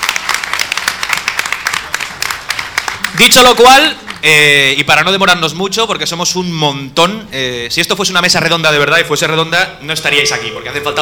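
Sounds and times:
crowd applauding the event organizers: 0.0s - 4.4s
speech: 3.2s - 11.0s.

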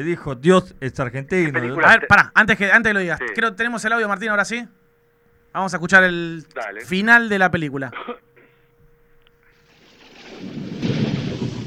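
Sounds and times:
speech: 0.0s - 4.8s, 5.5s - 8.3s
rain: 9.6s - 11.6s
deep rolling thunder: 9.7s - 11.6s.

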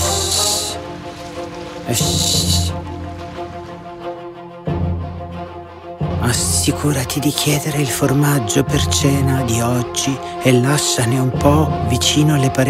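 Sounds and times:
snake slithering sound effect: 0.0s - 4.4s
steady low musical hum: 0.0s - 12.6s
speech: 1.9s - 2.6s, 6.6s - 12.6s.

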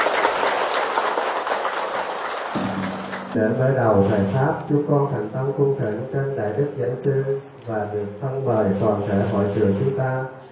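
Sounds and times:
audience applause: 0.0s - 3.4s
speech: 3.4s - 10.4s.

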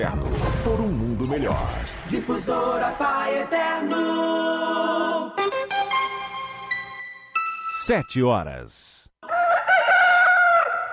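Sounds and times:
speech: 0.0s - 5.8s, 7.9s - 9.0s
rooster crowing: 9.2s - 10.9s.

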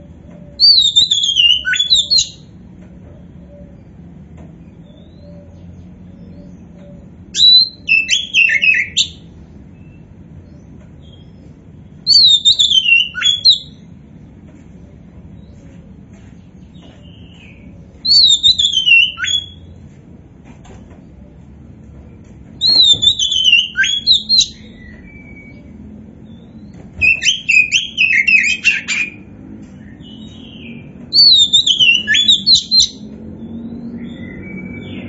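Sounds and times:
Oriental magpie-robin song: 0.5s - 2.5s, 4.8s - 13.9s, 16.7s - 19.7s, 22.6s - 29.2s, 29.8s - 35.0s.

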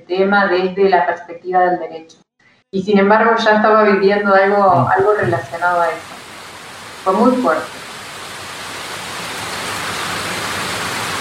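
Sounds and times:
speech: 0.1s - 6.2s, 7.0s - 7.8s
heavy rain pouring down on flooded Santa Fe: 4.3s - 11.1s.

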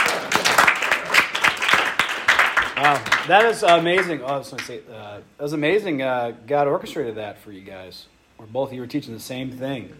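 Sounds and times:
applause from a small group: 0.0s - 4.7s
speech: 2.8s - 9.9s.

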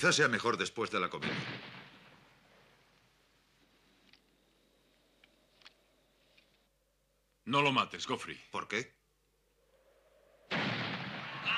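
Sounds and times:
speech: 0.0s - 1.8s, 7.5s - 9.0s
shotgun shot during a bird hunt in a dubbed 1945 film: 1.2s - 2.4s, 10.5s - 11.5s.

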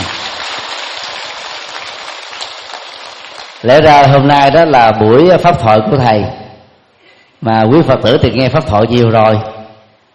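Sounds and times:
audience applause: 0.0s - 3.7s
speech: 3.6s - 6.4s, 7.4s - 9.5s.

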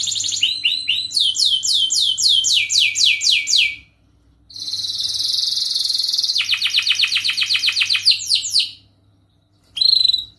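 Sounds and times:
canary singing trills: 0.0s - 10.3s
steady low hum: 0.0s - 10.3s.

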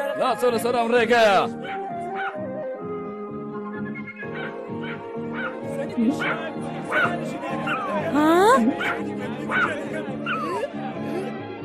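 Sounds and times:
speech: 0.2s - 1.8s, 6.0s - 10.3s
dog yipping and whimpering: 1.6s - 2.4s, 8.7s - 10.7s.

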